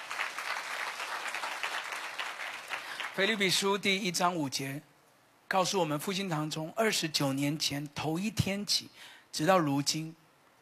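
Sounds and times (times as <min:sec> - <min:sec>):
audience clapping: 0:00.0 - 0:03.6
speech: 0:03.2 - 0:04.9, 0:05.5 - 0:10.6.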